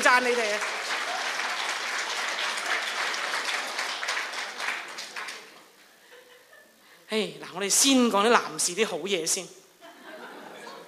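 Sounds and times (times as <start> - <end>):
audience clapping: 0.0 - 5.8
speech: 0.1 - 0.8, 7.1 - 9.6
laughter: 6.0 - 6.8, 9.8 - 10.8.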